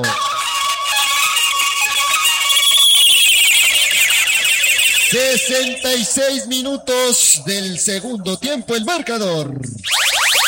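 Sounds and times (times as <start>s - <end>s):
stadium electronic buzzer: 0.2s - 6.1s, 9.8s - 10.4s
speech: 5.1s - 10.0s.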